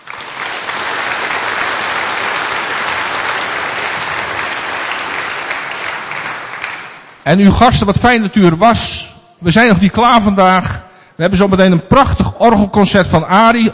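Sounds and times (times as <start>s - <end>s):
audience applause: 0.0s - 7.2s
speech: 7.3s - 13.7s.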